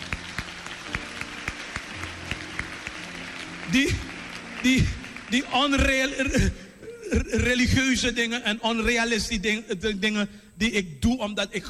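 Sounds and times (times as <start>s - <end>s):
audience applauding: 0.0s - 6.5s
speech: 3.7s - 11.6s.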